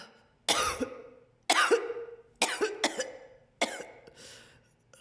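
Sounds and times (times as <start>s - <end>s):
female coughing and falling in battle: 0.5s - 4.1s.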